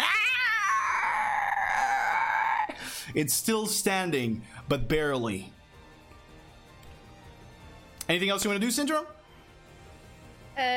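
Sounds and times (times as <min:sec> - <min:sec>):
monster creature shrieking: 0:00.0 - 0:02.8
speech: 0:03.1 - 0:05.6, 0:08.1 - 0:09.2, 0:10.6 - 0:10.7.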